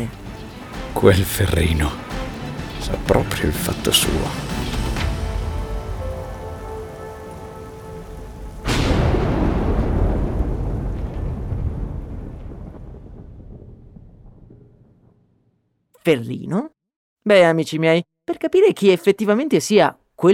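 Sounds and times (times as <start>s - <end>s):
speech: 0.0s - 0.2s, 1.0s - 2.2s, 2.8s - 4.6s, 16.1s - 16.7s, 17.3s - 20.3s
thunderstorm: 0.0s - 15.4s.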